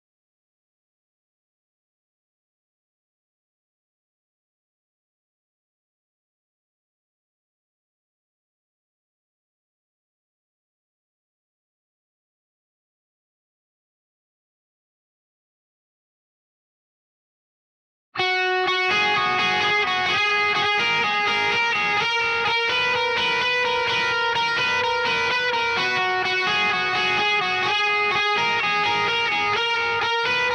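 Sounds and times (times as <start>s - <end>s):
bass guitar: 18.2s - 30.5s.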